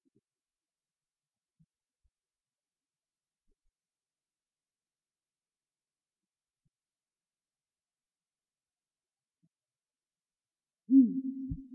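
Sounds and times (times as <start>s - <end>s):
Great grey owl hooting: 10.9s - 11.7s.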